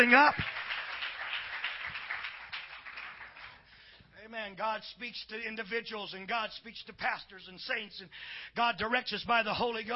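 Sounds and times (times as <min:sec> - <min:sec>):
speech: 0:00.0 - 0:00.5, 0:04.3 - 0:09.9
audience clapping: 0:00.0 - 0:03.8.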